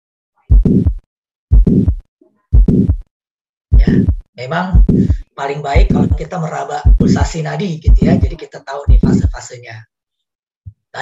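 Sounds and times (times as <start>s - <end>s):
heart sounds through a stethoscope on auscultation: 0.5s - 3.1s, 3.7s - 9.4s
speech: 3.9s - 9.9s.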